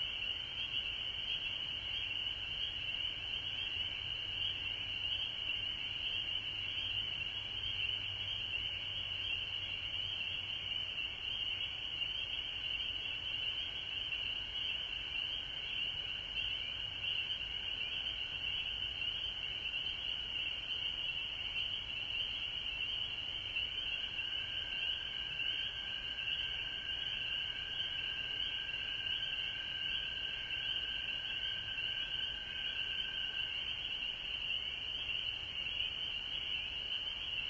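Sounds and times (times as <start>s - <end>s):
frog chorus trilling: 0.0s - 37.4s.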